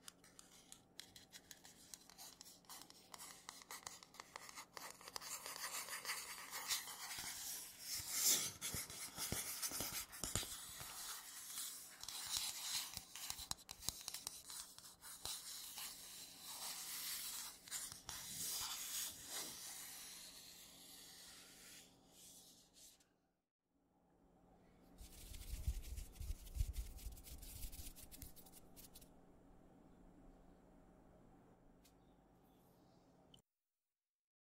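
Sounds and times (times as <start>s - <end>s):
scratchy tapping and rubbing on matte surfaces: 0.0s - 19.6s, 25.0s - 29.1s.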